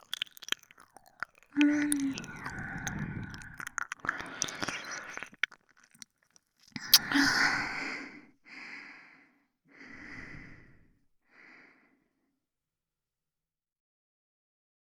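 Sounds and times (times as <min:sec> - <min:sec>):
ASMR ear licking sounds: 0:00.0 - 0:07.4.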